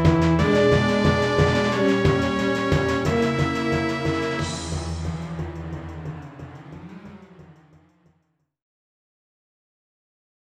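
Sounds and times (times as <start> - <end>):
boss battle game music: 0.0 - 5.0.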